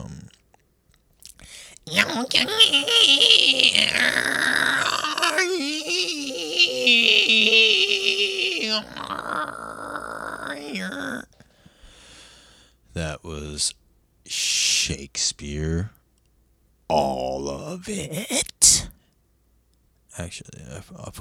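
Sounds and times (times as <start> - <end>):
human voice imitating dolphin chatter: 0.0 - 0.4, 1.8 - 11.3
speech: 1.9 - 9.7, 10.6 - 11.3, 13.0 - 16.0, 16.9 - 18.8, 20.2 - 21.1.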